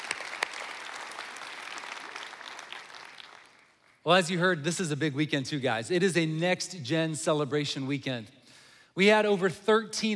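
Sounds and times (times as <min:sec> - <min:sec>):
church congregation applauding: 0:00.0 - 0:04.0
speech: 0:04.0 - 0:08.4, 0:09.0 - 0:10.1.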